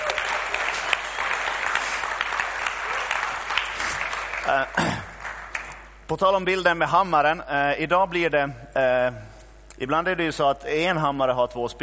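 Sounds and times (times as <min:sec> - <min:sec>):
audience applause: 0:00.0 - 0:05.9
speech: 0:04.5 - 0:05.0, 0:06.1 - 0:11.8.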